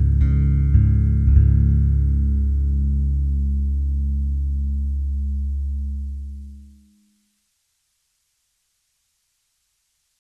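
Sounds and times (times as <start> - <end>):
instrumental music: 0.0 - 7.3.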